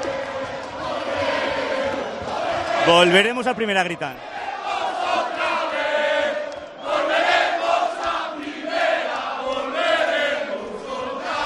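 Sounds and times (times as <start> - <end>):
football crowd chanting club anthem live in Pamplona: 0.0 - 11.4
speech: 2.8 - 4.3.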